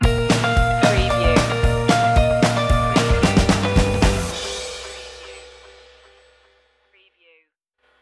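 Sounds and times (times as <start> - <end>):
musical stinger: 0.3 - 6.5.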